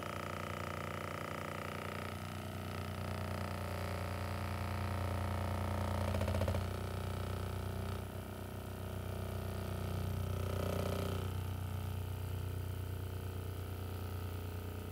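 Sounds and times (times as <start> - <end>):
electric massager running in a full body massage: 0.0 - 14.9.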